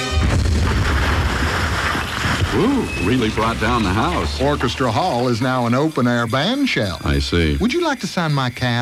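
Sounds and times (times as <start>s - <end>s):
huge cannon blast from a 21-ton megablast cannon: 0.1s - 5.2s
speech: 2.5s - 8.8s.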